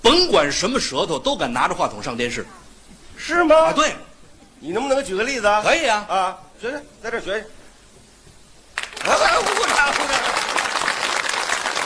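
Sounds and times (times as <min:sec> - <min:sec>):
speech: 0:00.1 - 0:07.6, 0:09.0 - 0:10.3
audience applause: 0:08.8 - 0:11.8
person cheering: 0:09.0 - 0:10.4.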